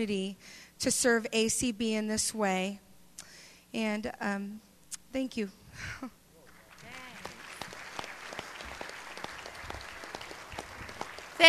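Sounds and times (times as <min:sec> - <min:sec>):
speech: 0:00.0 - 0:02.8, 0:03.7 - 0:06.2
audience applause: 0:06.5 - 0:11.4.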